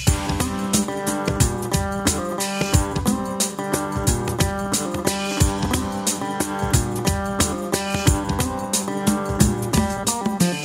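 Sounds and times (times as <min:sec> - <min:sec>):
dobro: 0:00.1 - 0:10.6
guitar: 0:00.1 - 0:10.6.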